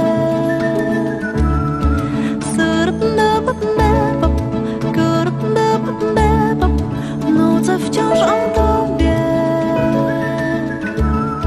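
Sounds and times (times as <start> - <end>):
whistled melody: 0.0 - 2.6, 8.0 - 11.4
full musical backing with bouncy low bass notes: 0.0 - 11.4.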